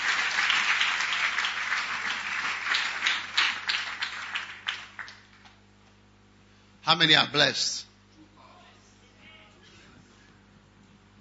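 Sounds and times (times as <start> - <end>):
audience clapping: 0.0 - 6.0
speech: 6.9 - 7.8.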